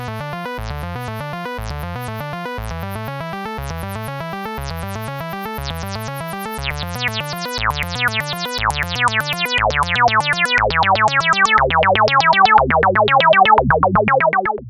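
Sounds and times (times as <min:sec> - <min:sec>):
resonant saw synth arpeggio: 0:00.2 - 0:14.6.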